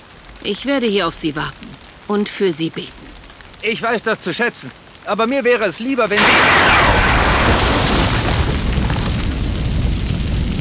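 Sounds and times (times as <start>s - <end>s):
speech: 0.4s - 3.0s, 3.6s - 7.1s
lightning strike: 6.1s - 10.6s
thunder: 6.2s - 10.6s.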